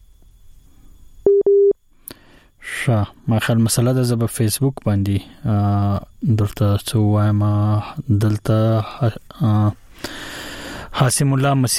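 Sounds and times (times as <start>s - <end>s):
telephone busy signal: 1.2s - 1.8s
speech: 2.8s - 10.2s, 11.0s - 11.7s.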